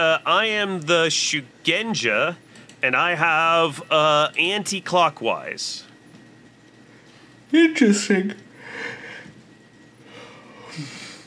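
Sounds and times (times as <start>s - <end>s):
speech: 0.0s - 5.9s, 7.5s - 8.4s, 10.8s - 11.0s
yawn: 10.4s - 11.2s.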